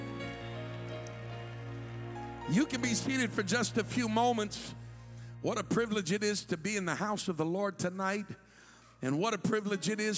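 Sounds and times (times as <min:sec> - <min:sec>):
audience clapping hands: 0:00.0 - 0:04.0
speech: 0:02.5 - 0:04.8, 0:05.4 - 0:08.4, 0:09.0 - 0:10.1.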